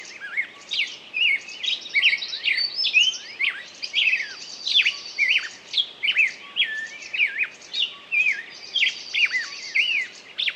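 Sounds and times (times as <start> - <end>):
birds singing in chorus: 0.0 - 10.5.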